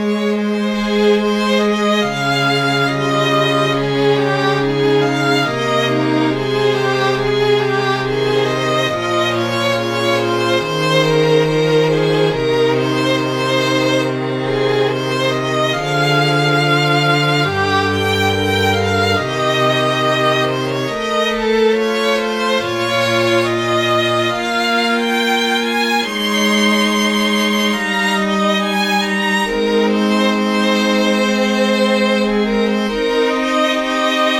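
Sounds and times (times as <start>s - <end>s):
string quartet playing: 0.0s - 34.3s.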